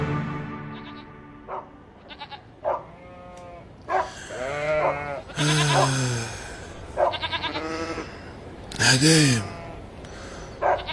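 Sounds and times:
sheep bleating: 0.7 - 1.1, 2.0 - 6.3, 7.0 - 8.3, 9.1 - 9.9, 10.7 - 10.9.

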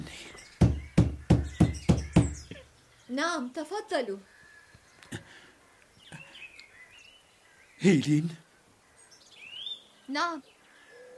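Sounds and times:
firm knocking on a door: 0.6 - 2.6
speech: 3.2 - 4.4, 7.8 - 8.4, 10.1 - 10.5.

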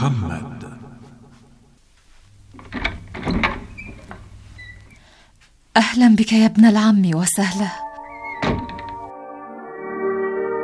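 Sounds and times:
speech: 0.0 - 0.6, 5.8 - 7.8
door opening in a dramatized story: 2.3 - 5.1, 8.0 - 9.1.

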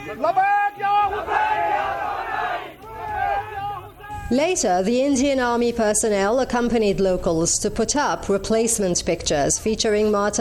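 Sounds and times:
protest crowd chanting slogans: 0.0 - 4.3
speech: 0.1 - 1.4, 4.3 - 10.4.

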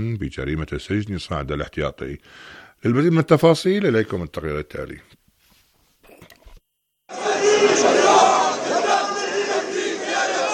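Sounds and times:
speech: 0.0 - 5.2
crowd chanting at rally: 7.1 - 10.5.

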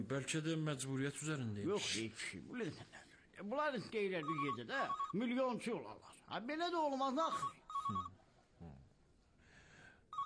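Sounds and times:
speech: 0.0 - 8.2
telephone ringing: 4.2 - 5.2, 7.2 - 8.1.

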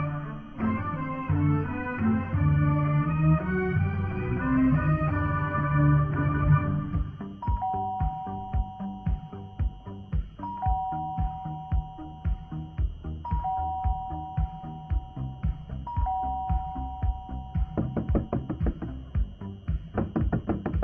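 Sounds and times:
rhythmic thumping: 0.6 - 20.8
two-note doorbell chime at a door: 7.4 - 9.8, 10.4 - 12.6, 13.2 - 18.0.

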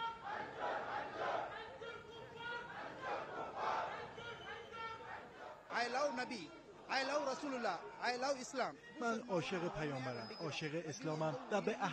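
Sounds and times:
large protest crowd shouting angry chants: 0.0 - 11.9
speech: 5.8 - 11.9
laughter: 9.3 - 11.9.

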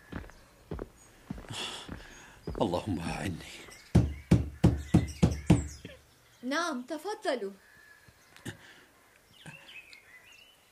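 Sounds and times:
faint bird chirps: 2.0 - 10.7
speech: 2.6 - 3.7, 6.5 - 7.7
knocking on a wooden door: 3.9 - 5.8.

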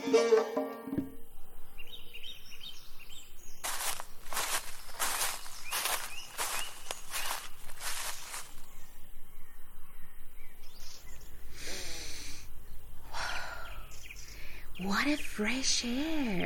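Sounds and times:
speech: 0.1 - 0.7, 15.1 - 16.4
soft bird chirps in a forest: 1.1 - 16.4
crunchy footsteps in a forest: 3.6 - 8.8.

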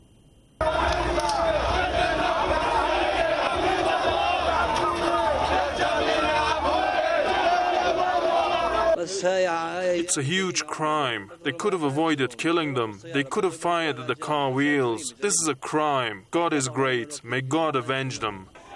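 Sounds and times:
crowd at a funeral procession: 0.6 - 9.0, 18.5 - 18.7
speech: 9.2 - 18.6.

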